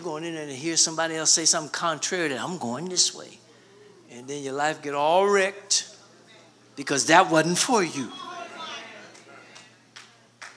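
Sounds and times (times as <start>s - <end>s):
speech: 0.0s - 3.4s, 4.1s - 5.9s, 6.8s - 8.2s
audience clapping: 9.0s - 10.5s.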